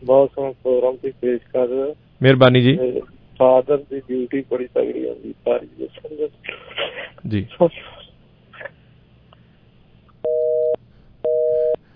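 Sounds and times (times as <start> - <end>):
speech: 0.0 - 8.0
faint low noise: 0.0 - 11.9
telephone busy tone after a dropped call: 10.2 - 11.8.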